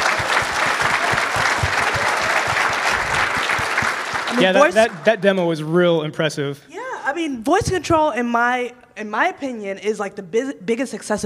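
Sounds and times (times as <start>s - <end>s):
audience applause: 0.0s - 5.3s
speech: 4.4s - 11.2s.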